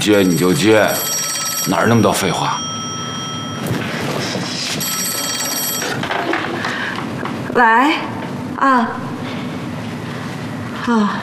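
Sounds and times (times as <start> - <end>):
speech: 0.0 - 2.7, 7.6 - 9.1, 10.9 - 11.2
telephone ringing: 0.0 - 6.7.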